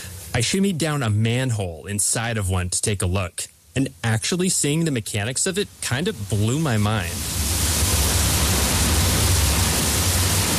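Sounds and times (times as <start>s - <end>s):
speech: 0.4s - 7.6s
water from artificial glaciers flowing into huge underground reservoir: 5.6s - 10.5s.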